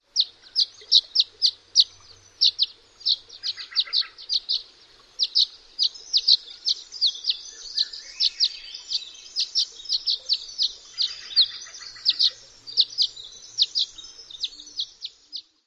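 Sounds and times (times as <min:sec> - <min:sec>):
calls and song: 0:00.0 - 0:15.6.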